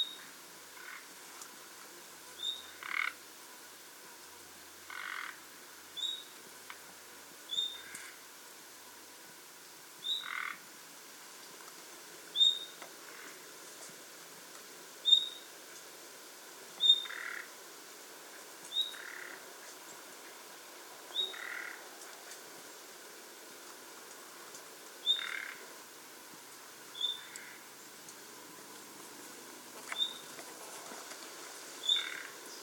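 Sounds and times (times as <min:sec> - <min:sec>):
steady background hiss: 0:00.0 - 0:32.6
common nightingale calls: 0:02.4 - 0:03.2, 0:06.0 - 0:06.4, 0:07.5 - 0:08.2, 0:10.0 - 0:10.6, 0:12.4 - 0:13.3, 0:15.0 - 0:15.5, 0:16.8 - 0:17.5, 0:18.7 - 0:20.0, 0:21.1 - 0:21.8, 0:25.0 - 0:25.6, 0:26.9 - 0:27.9, 0:29.9 - 0:30.4, 0:31.8 - 0:32.6.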